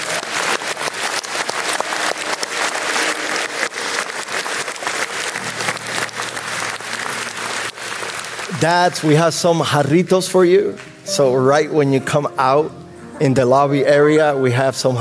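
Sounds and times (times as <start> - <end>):
audience applause: 0.0 - 10.2
speech: 8.6 - 15.0.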